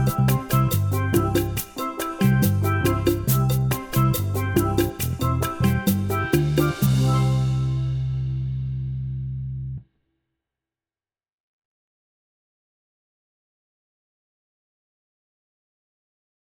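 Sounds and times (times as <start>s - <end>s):
one chord calypso backing track in C: 0.0s - 8.9s.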